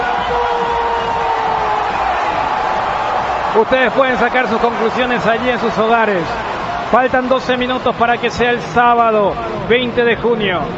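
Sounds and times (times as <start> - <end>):
large stadium crowd shouting and roaring: 0.0 - 9.6
speech: 3.6 - 10.7.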